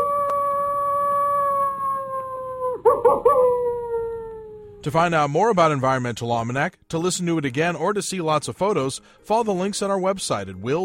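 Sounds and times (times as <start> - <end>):
coyote howling and yipping: 0.0 - 4.8
speech: 4.8 - 10.8.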